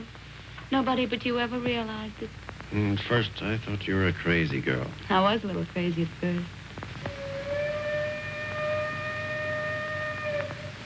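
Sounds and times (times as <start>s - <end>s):
speech: 0.0s - 6.6s
train whistle at station: 7.1s - 10.8s.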